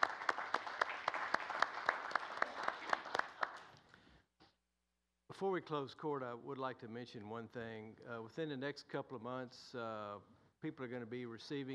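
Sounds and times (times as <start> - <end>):
audience applause: 0.0 - 3.7
speech: 5.4 - 11.7.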